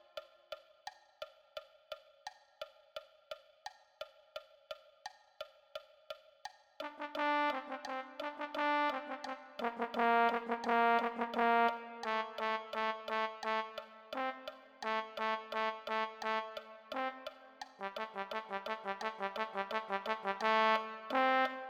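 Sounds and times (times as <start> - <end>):
low brass: 6.8 - 21.6.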